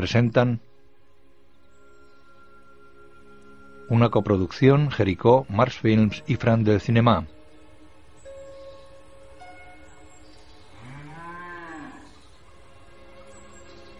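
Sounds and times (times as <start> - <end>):
speech: 0.0 - 0.7, 3.9 - 7.4
cow mooing: 10.8 - 12.2.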